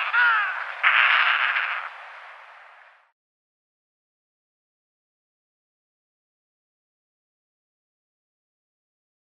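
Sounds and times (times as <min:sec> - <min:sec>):
Yelkouan shearwater calling: 0:00.0 - 0:02.0.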